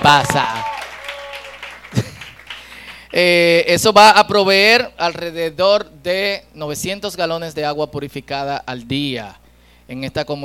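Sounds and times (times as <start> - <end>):
speech: 0.0 - 0.6, 3.1 - 10.4
audience applauding: 0.0 - 3.2.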